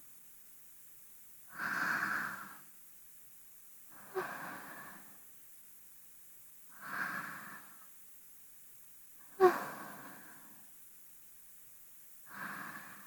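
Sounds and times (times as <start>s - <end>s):
person breathing in sleep, binaural: 1.5s - 2.7s, 3.9s - 5.2s, 6.7s - 7.9s, 9.3s - 10.7s, 12.2s - 13.0s.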